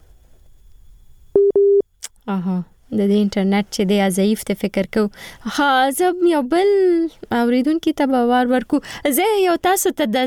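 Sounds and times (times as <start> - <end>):
busy tone on a dropped telephone line: 1.4 - 1.8
speech: 2.3 - 10.2.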